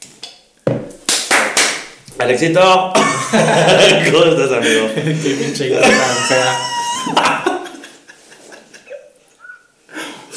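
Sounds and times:
hand clap: 0.9s - 2.0s
speech: 2.2s - 7.5s
laughter: 3.0s - 9.2s.

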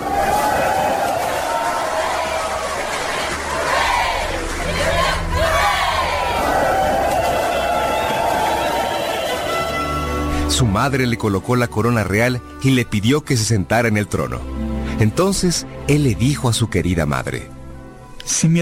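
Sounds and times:
crowd cheering, acclaiming a new king: 0.0s - 10.3s
speech: 10.6s - 17.6s, 18.3s - 18.6s.

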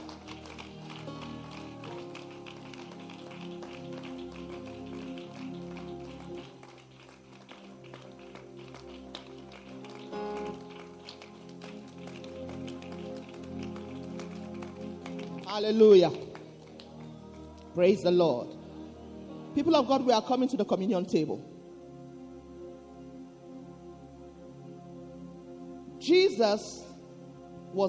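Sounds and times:
audience clapping hands: 0.0s - 17.8s
speech: 15.6s - 16.2s, 17.8s - 18.5s, 19.6s - 21.5s, 26.4s - 26.9s.

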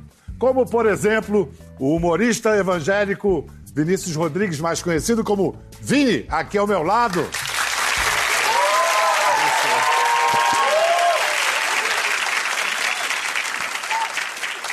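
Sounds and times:
speech: 0.4s - 7.4s
crowd clapping: 7.0s - 14.7s
whoops and cheering voices: 8.3s - 14.4s.

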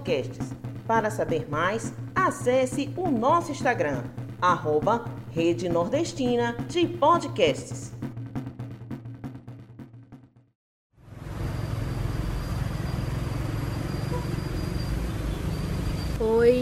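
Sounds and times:
speech: 0.0s - 8.0s
passing cars on a noisy street: 11.0s - 16.2s.

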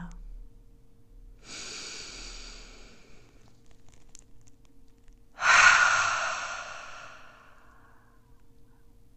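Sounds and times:
deep breath in and full exhale during a guided meditation: 1.4s - 3.5s, 5.4s - 8.1s.

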